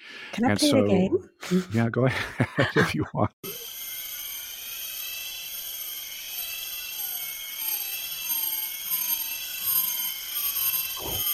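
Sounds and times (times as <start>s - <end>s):
speech: 0.3s - 3.6s
laughter: 1.7s - 3.3s
several six o'clock cicadas calling: 3.6s - 11.3s.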